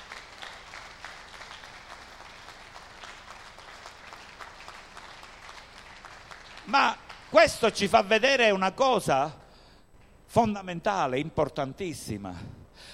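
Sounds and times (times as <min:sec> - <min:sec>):
audience applause: 0:00.0 - 0:07.4
speech: 0:06.7 - 0:09.4, 0:10.3 - 0:12.9.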